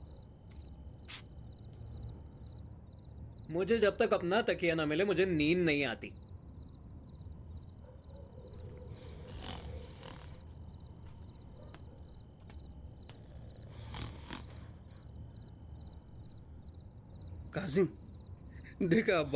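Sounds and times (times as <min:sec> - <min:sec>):
speech: 0:03.5 - 0:06.2, 0:17.7 - 0:18.0, 0:18.8 - 0:19.3
snoring: 0:08.6 - 0:10.6, 0:13.1 - 0:15.2.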